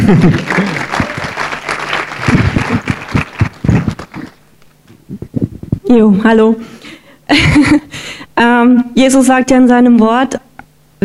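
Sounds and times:
audience applause: 0:00.0 - 0:04.4
laughter: 0:00.0 - 0:04.4, 0:07.3 - 0:07.9
speech: 0:00.1 - 0:00.8, 0:05.9 - 0:07.9, 0:08.6 - 0:11.0.

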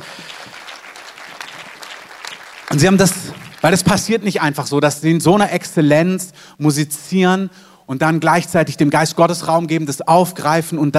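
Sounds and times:
audience applause: 0:00.0 - 0:04.1
speech: 0:02.8 - 0:10.9.

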